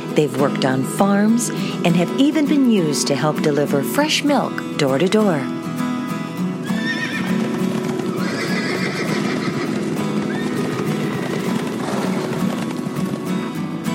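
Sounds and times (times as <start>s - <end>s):
speech: 0.2s - 5.7s
horse whinnying and neighing: 6.6s - 12.2s
horse hooves clip-clopping: 6.6s - 13.8s.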